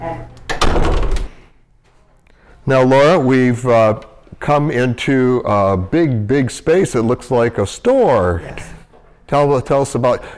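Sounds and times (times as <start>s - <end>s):
speech: 0.0s - 0.4s, 2.6s - 10.3s
pantry door at a food pantry swinging shut: 0.0s - 1.5s.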